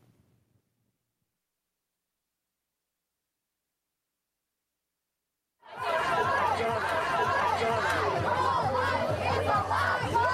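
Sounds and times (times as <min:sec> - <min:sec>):
crowd chattering outside the Supreme Court: 0:05.6 - 0:10.3
shouts: 0:05.6 - 0:10.3
laughter: 0:05.8 - 0:08.9.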